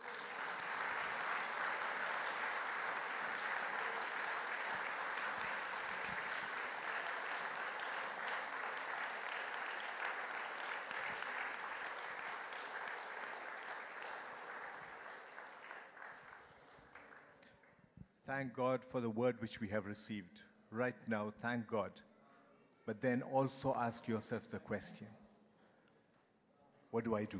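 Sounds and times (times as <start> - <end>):
audience clapping: 0.0 - 17.8
speech: 18.3 - 22.1, 22.9 - 25.2, 26.9 - 27.3.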